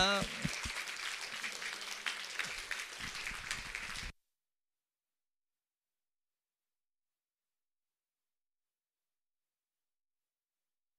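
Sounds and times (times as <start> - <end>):
person speaking: 0.0 - 0.5
audience applause welcoming performers: 0.0 - 4.1.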